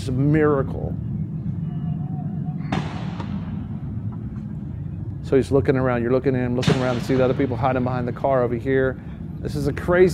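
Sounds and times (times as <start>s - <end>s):
speech: 0.0s - 1.2s, 5.3s - 10.1s
low rumble: 0.0s - 10.1s
gunshots from police firing back: 2.7s - 3.8s.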